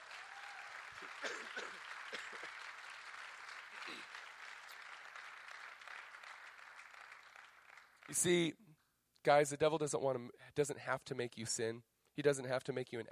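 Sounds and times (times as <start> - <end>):
cheers and voices: 0.0 - 0.9
audience applause: 0.0 - 8.4
speech: 1.0 - 2.7, 3.9 - 4.3, 8.1 - 8.6, 9.2 - 13.1.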